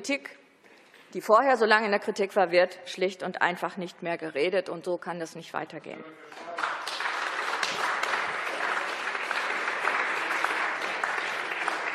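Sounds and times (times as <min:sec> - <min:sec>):
speech: 0:00.0 - 0:00.4, 0:01.1 - 0:06.8
applause: 0:06.3 - 0:11.9.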